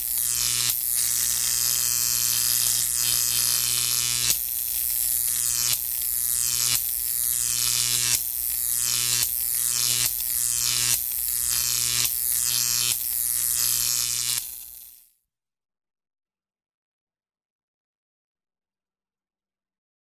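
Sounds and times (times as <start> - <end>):
electric current buzzing: 0.0 - 15.1.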